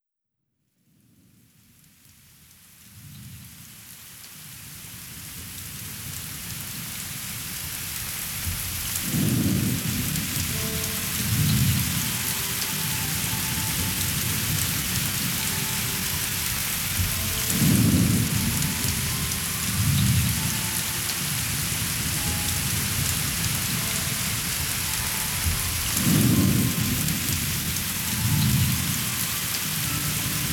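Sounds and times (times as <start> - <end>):
rain: 1.6 - 30.5.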